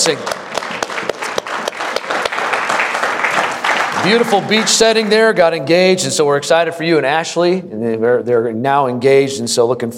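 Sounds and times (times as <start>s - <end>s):
speech: 0.0s - 0.4s, 4.0s - 9.9s
church congregation applause congratulating a newly engaged member: 0.0s - 5.4s.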